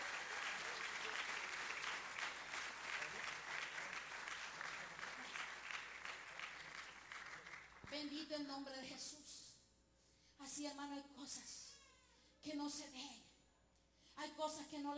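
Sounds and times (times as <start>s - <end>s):
audience applause: 0.0s - 7.9s
speech: 7.9s - 9.4s, 10.4s - 11.7s, 12.4s - 13.2s, 14.2s - 14.9s.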